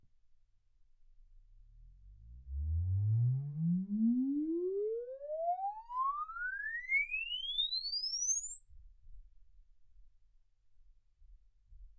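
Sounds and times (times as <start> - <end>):
exponential sine sweep from 10 Hz to 24 kHz: 2.5 - 9.7.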